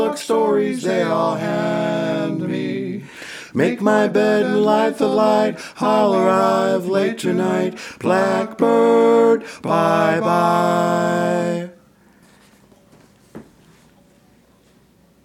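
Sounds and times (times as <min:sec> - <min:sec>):
vocals: 0:00.0 - 0:11.9.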